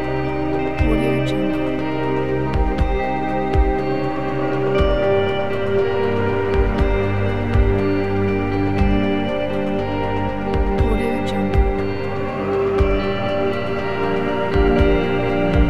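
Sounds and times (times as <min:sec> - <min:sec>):
inspiring cinematic ambient guitars: 0:00.0 - 0:15.6.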